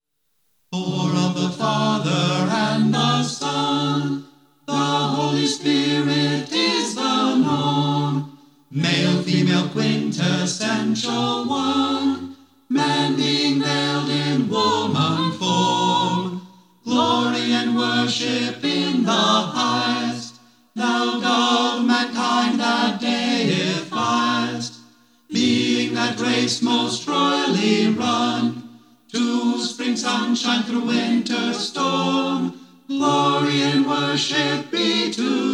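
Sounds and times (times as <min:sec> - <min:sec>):
chorus singing an anthem in unison: 0:00.7 - 0:35.5.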